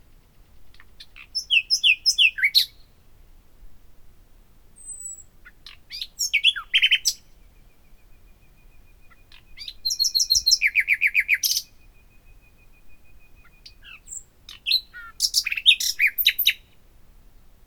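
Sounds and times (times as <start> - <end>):
common nightingale Luscinia megarhynchos singing: 0.0 - 3.3, 4.8 - 16.9.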